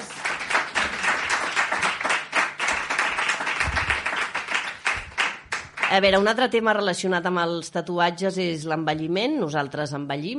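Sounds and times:
applause: 0.0s - 6.3s
speech: 5.9s - 10.3s.

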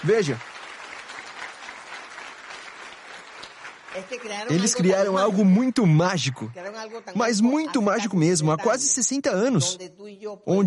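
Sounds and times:
speech: 0.0s - 0.5s, 4.0s - 10.6s
audience applause: 0.0s - 6.5s.

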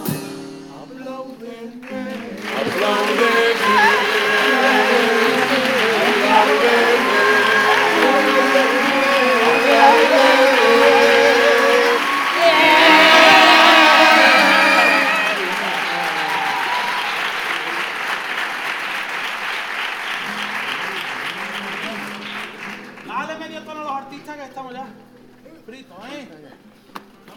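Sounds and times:
audience applause: 1.8s - 23.2s.

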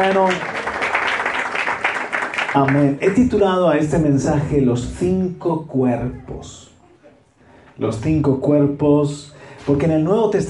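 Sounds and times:
speech: 0.0s - 0.6s, 2.6s - 6.7s, 7.8s - 10.4s
audience applause: 0.0s - 3.1s.

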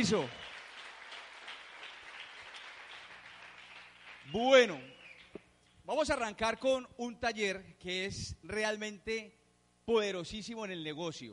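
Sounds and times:
speech: 0.0s - 0.4s, 4.3s - 5.0s, 5.9s - 11.3s
crowd applauding: 0.0s - 5.4s.

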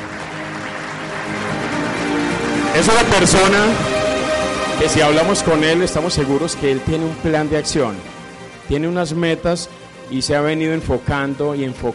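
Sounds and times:
audience applause: 0.0s - 5.9s
speech: 2.8s - 3.9s, 4.8s - 11.9s.

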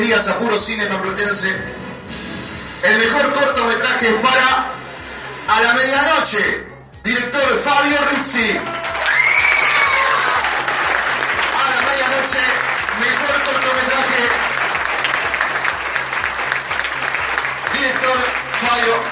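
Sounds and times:
speech: 0.0s - 1.9s, 2.8s - 4.8s, 5.5s - 9.0s, 12.2s - 14.4s, 18.1s - 19.0s
cheers and whoops: 8.6s - 11.0s
audience applause: 8.6s - 19.0s.

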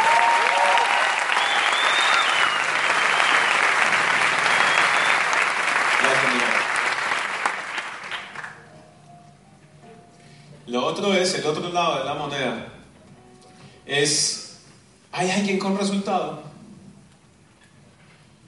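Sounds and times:
crowd applauding: 0.0s - 8.6s
speech: 11.0s - 12.8s, 13.9s - 14.4s, 15.2s - 16.5s.

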